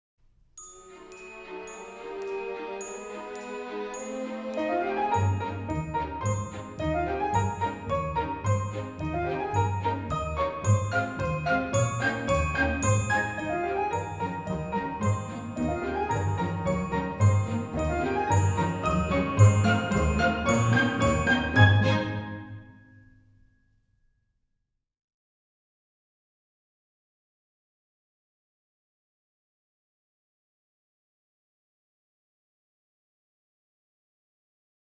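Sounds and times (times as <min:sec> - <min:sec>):
exam music: 0:04.6 - 0:22.7.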